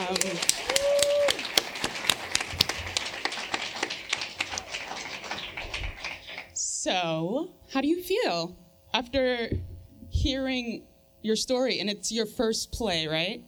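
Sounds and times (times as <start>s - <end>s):
crowd applause: 0.0s - 6.6s
high tonal whoop or whistle: 0.6s - 1.5s
speech: 6.9s - 9.6s, 10.2s - 13.4s.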